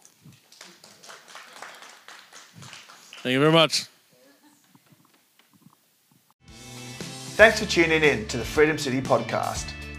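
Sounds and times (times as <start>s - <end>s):
audience clapping: 0.0s - 3.6s
speech: 3.2s - 3.9s, 7.4s - 9.8s.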